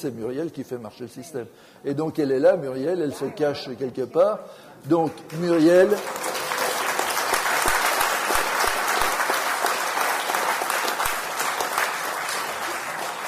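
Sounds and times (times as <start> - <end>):
speech: 0.0 - 6.3
audience applauding: 5.3 - 13.2.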